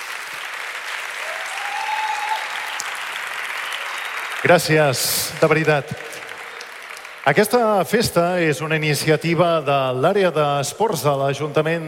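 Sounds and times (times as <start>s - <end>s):
audience applause: 0.0s - 8.5s
speech: 4.4s - 6.2s, 7.2s - 11.8s.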